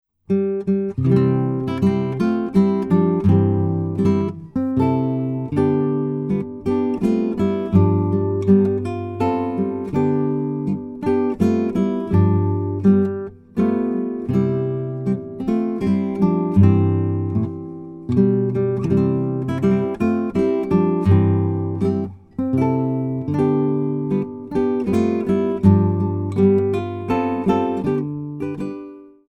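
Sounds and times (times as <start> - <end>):
guitar playing: 0.3 - 29.2.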